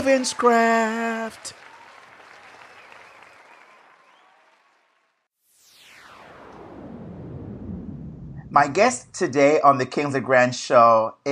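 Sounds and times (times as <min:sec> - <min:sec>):
speech: 0:00.0 - 0:01.6, 0:08.6 - 0:11.3
applause welcoming a show guest: 0:00.0 - 0:05.3
loud falling whoosh: 0:05.5 - 0:09.1.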